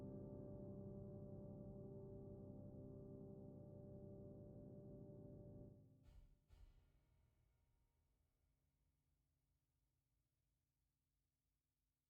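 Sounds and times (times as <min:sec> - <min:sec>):
piano with tuned resonators: 0:00.0 - 0:05.9.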